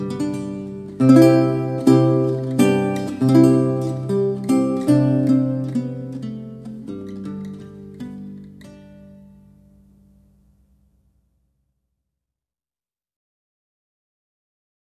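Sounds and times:
lute piece: 0.0s - 11.2s.

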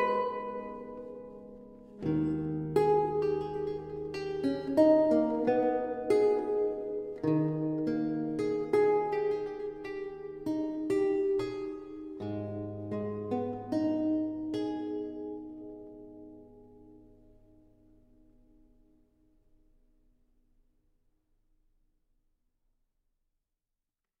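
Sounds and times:
lute prelude: 0.0s - 18.0s.

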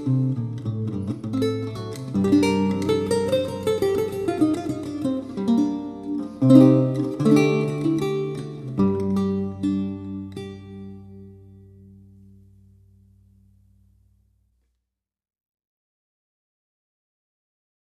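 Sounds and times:
prelude on lute: 0.0s - 14.4s.

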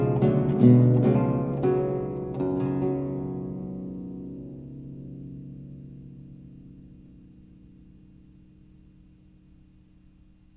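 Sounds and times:
baroque lute bourree: 0.0s - 7.1s.

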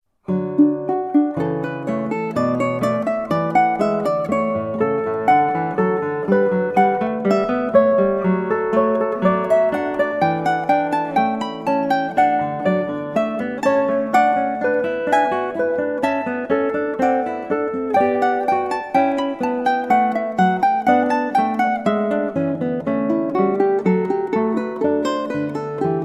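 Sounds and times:
guitar playing a prelude: 0.2s - 26.0s
ukulele playing a prelude: 0.2s - 26.0s.

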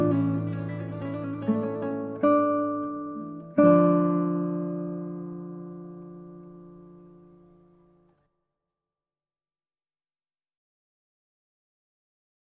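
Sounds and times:
8-string guitar playing a largo concerto in A minor: 0.0s - 8.3s.

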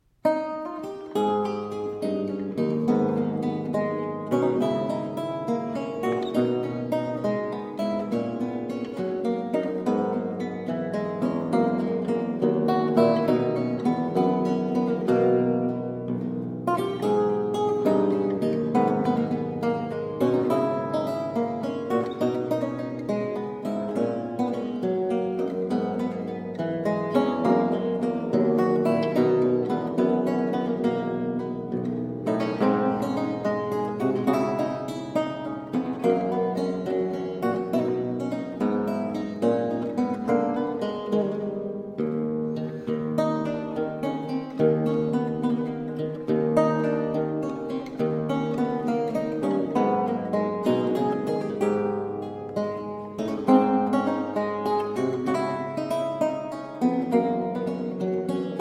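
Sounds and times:
lute gigue from a suite in A minor: 0.0s - 58.6s.

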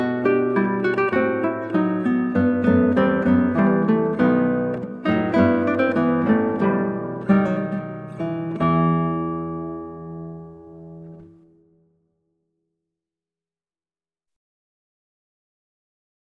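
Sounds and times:
guitar playing an allegro from a trio sonata in E minor: 0.0s - 12.5s.

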